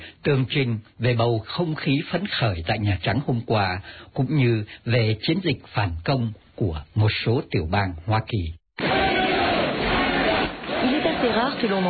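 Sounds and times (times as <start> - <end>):
speech: 0.2 - 9.0, 11.5 - 11.8
noisy crowd inside the White House: 8.8 - 11.8.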